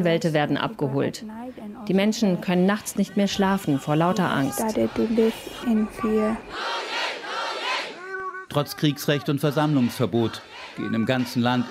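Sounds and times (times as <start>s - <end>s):
speech: 0.0s - 6.8s, 8.5s - 11.6s
demonstrators chanting: 2.9s - 11.6s.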